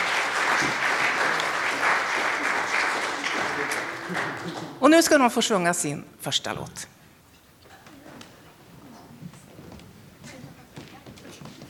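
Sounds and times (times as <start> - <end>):
audience applause: 0.0 - 4.8
speech: 4.1 - 7.0.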